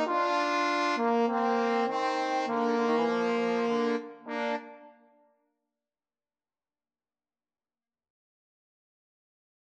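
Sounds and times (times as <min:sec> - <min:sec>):
third trombone part for karaoke: 0:00.0 - 0:04.9.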